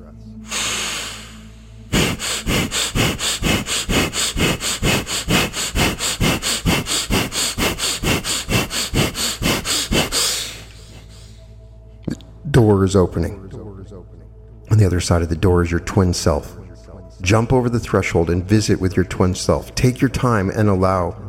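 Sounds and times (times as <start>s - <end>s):
rapid fire breathing exercise: 0.4s - 11.7s
speech: 12.7s - 13.4s, 14.8s - 16.6s, 17.3s - 21.2s.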